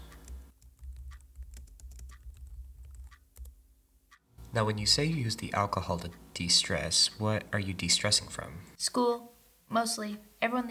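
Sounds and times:
low hum: 0:00.0 - 0:10.6
typing an email on a computer keyboard: 0:00.2 - 0:03.6
speech: 0:04.5 - 0:10.6.

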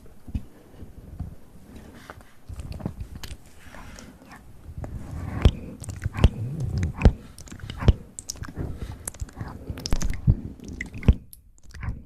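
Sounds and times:
close mouth sounds: 0:02.4 - 0:12.0.

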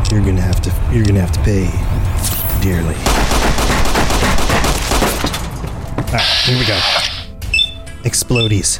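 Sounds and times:
speech: 0:00.1 - 0:03.4, 0:06.1 - 0:07.1, 0:08.1 - 0:08.7
video game gunfire: 0:03.1 - 0:05.4.

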